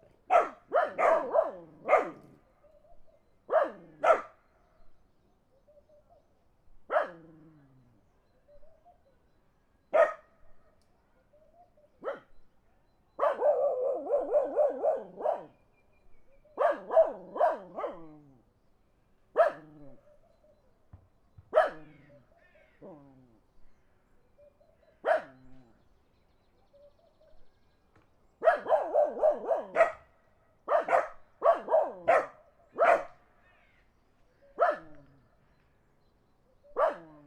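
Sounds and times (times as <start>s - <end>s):
dogs barking in the country: 0.3s - 2.3s, 3.5s - 4.4s, 6.9s - 7.5s, 9.9s - 10.3s, 12.0s - 12.3s, 13.2s - 15.6s, 16.6s - 18.2s, 19.4s - 20.0s, 21.5s - 22.1s, 25.0s - 25.7s, 28.4s - 30.1s, 30.7s - 33.2s, 34.5s - 35.1s, 36.8s - 37.2s.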